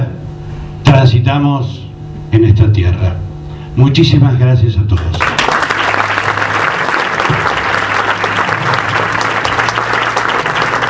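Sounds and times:
speech: 1.0s - 3.2s, 3.8s - 5.4s
audience applause: 5.1s - 10.8s.

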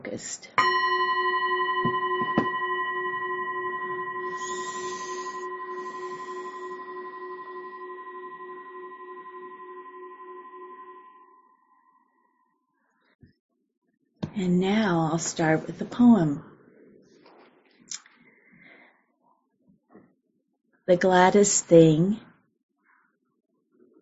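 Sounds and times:
speech: 0.0s - 0.8s, 14.4s - 16.5s, 20.9s - 22.3s
single bell struck: 0.6s - 11.4s.

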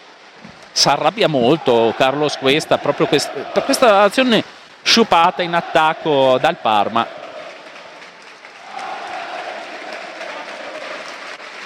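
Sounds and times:
stadium crowd applauding: 0.7s - 11.6s
speech: 0.8s - 7.2s.

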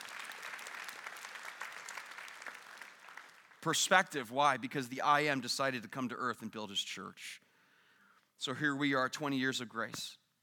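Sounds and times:
audience clapping: 0.0s - 4.1s
speech: 3.6s - 7.4s, 8.4s - 10.2s.

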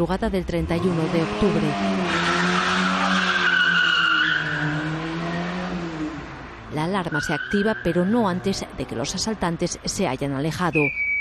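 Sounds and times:
speech: 0.0s - 2.4s, 6.8s - 11.1s
getaway car engine drone: 0.0s - 9.9s
getaway car tires skidding: 0.6s - 9.8s.

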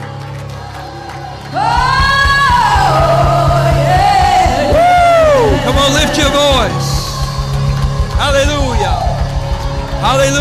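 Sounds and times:
audience clapping in rhythm: 0.0s - 10.3s
audience shouting praise: 0.0s - 10.3s.

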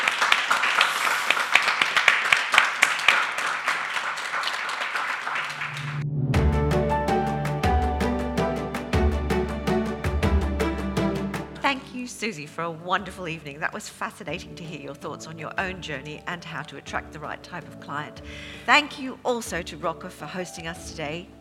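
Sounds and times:
audience round of applause: 0.0s - 6.0s
rhythmic music with a thumping beat: 6.0s - 11.7s
speech: 12.1s - 21.3s.

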